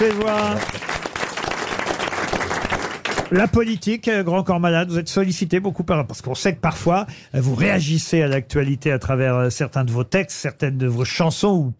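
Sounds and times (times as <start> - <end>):
speech: 0.0 - 0.8, 3.3 - 11.7
audience applause: 0.0 - 3.5.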